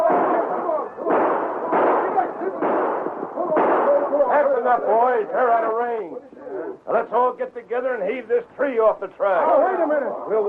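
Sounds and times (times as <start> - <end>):
rifle gunshots fired from a train: 0.0 - 4.9
rumbling din: 0.0 - 5.5
speech: 4.7 - 6.3, 6.9 - 10.4.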